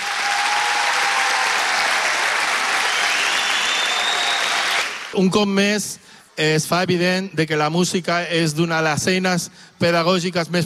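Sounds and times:
loud applause from audience: 0.0 - 5.4
speech: 5.2 - 10.6.

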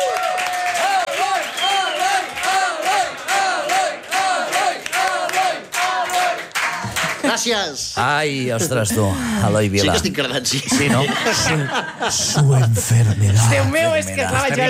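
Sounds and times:
audience applause: 0.0 - 7.4
speech: 7.4 - 14.6
laughter: 8.4 - 14.6.

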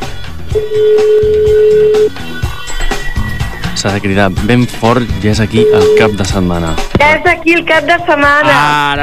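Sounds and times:
loud, busy music: 0.0 - 9.0
telephone line ringing tone: 0.5 - 3.6, 5.5 - 6.4
speech: 0.6 - 1.1, 3.8 - 9.0.

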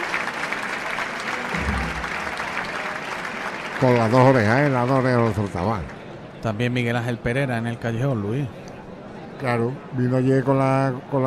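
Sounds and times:
audience at a bullring clapping for a bullfighter: 0.0 - 6.0
low rumble: 1.5 - 2.7
speech: 3.8 - 8.6, 9.4 - 11.2.

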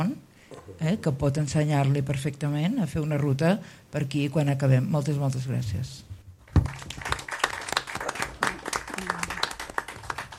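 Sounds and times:
speech: 0.0 - 0.2, 0.8 - 6.1
audience applause: 6.6 - 10.3.

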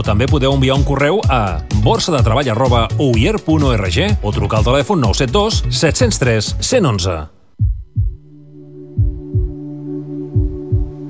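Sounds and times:
speech: 0.0 - 7.8
strong heartbeat: 7.6 - 8.3, 8.9 - 9.6, 10.4 - 11.0.

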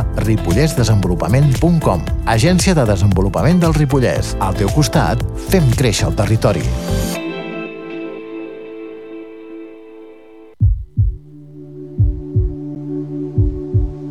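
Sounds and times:
speech: 0.2 - 7.2
heart beating strongly: 10.6 - 11.3, 11.9 - 12.7, 13.3 - 14.0.

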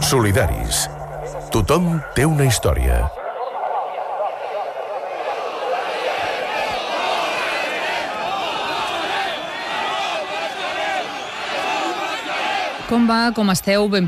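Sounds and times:
speech: 0.1 - 1.0, 1.5 - 3.2, 12.9 - 14.0
large protest crowd shouting with chants: 3.2 - 14.0.

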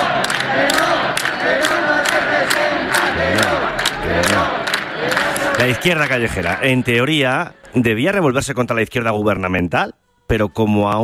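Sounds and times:
rhythmic sharp beats or claps: 0.0 - 7.8
large protest crowd chanting slogans: 0.0 - 8.3
speech: 5.6 - 11.0.

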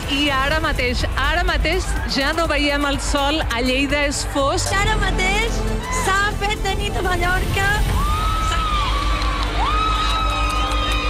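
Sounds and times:
speech: 0.1 - 8.0
crowd cheering and shouting on beach during eclipse: 0.1 - 11.0
whistles and whoops: 8.8 - 11.0.

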